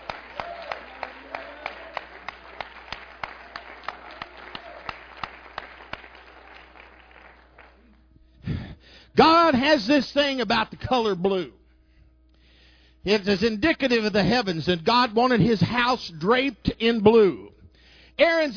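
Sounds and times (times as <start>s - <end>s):
audience clapping: 0.0s - 8.0s
speech: 9.2s - 11.6s, 13.0s - 17.5s, 18.2s - 18.5s.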